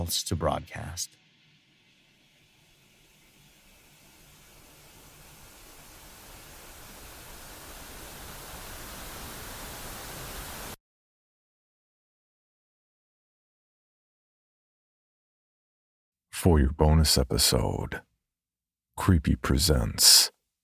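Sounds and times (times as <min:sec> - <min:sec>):
speech: 0:00.0 - 0:01.2, 0:16.4 - 0:18.1, 0:19.0 - 0:20.4
television static hiss: 0:00.0 - 0:10.8.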